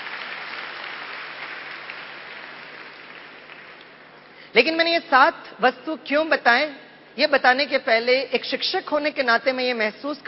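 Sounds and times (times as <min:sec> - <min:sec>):
audience applause: 0:00.0 - 0:04.0
speech: 0:04.5 - 0:10.2.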